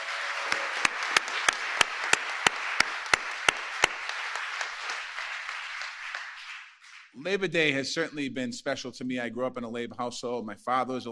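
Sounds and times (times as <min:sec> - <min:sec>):
audience round of applause: 0:00.0 - 0:07.2
speech: 0:07.2 - 0:11.1.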